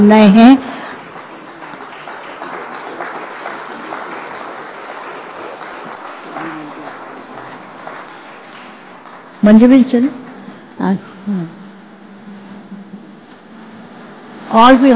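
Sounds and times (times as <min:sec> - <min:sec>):
speech: 0:00.0 - 0:00.7, 0:09.4 - 0:10.2, 0:10.8 - 0:11.6, 0:14.5 - 0:14.9
audience clapping: 0:00.0 - 0:10.5.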